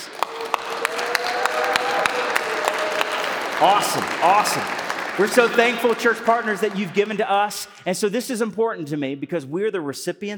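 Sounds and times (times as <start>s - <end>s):
audience applause: 0.0s - 7.9s
speech: 3.6s - 10.3s.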